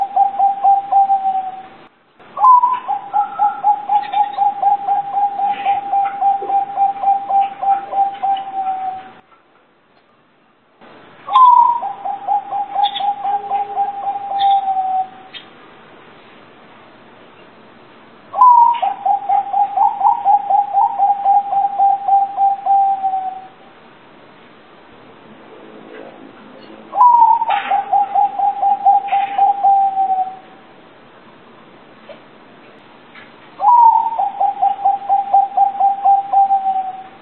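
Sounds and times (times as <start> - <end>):
local zebra dove cooing: 0.0 - 1.8, 2.4 - 9.2, 11.3 - 15.4, 18.3 - 23.6, 26.9 - 30.6, 33.6 - 37.2.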